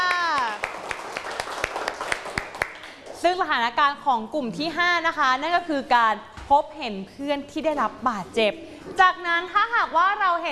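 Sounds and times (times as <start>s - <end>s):
scattered clapping from a small classroom group: 0.0s - 3.2s
speech: 3.2s - 10.5s.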